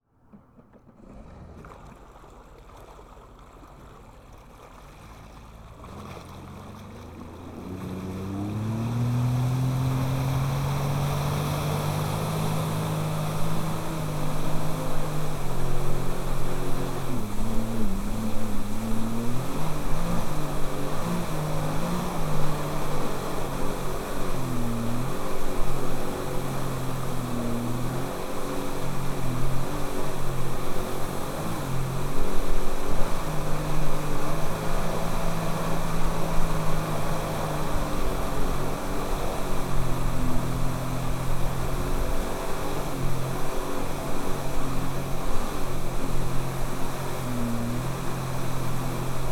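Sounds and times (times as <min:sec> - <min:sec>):
Sea Doo GTS 130 personal water craft engine starting, joyriding and stopping: 0:00.1 - 0:49.3.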